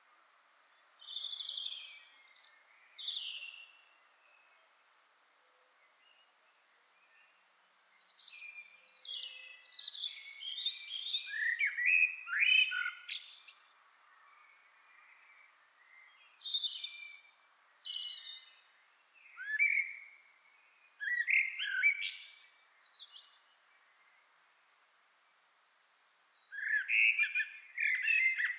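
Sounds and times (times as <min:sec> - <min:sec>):
common blackbird Turdus merula singing fluted warbles and squeaky notes: 0:01.0 - 0:04.5, 0:08.0 - 0:13.7, 0:14.5 - 0:20.2, 0:21.0 - 0:23.5, 0:26.4 - 0:28.5.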